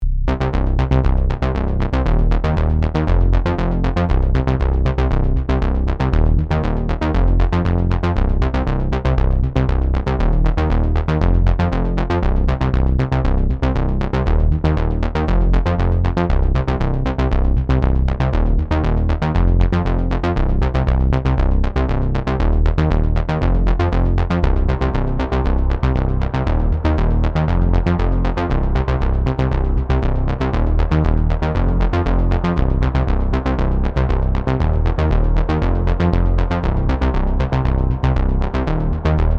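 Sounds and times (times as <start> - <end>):
ARP 2600 synthesizer with reverb and echo: 0.0 - 39.3.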